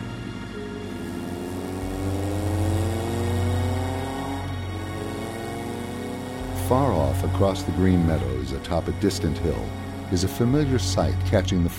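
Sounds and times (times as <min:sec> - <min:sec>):
car engine humming: 0:00.0 - 0:11.7
speech: 0:06.7 - 0:11.7.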